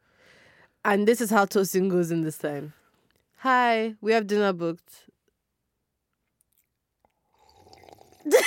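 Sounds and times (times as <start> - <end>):
speech: 0.8 - 2.8, 3.4 - 5.1
loud sip of coffee: 7.1 - 8.3.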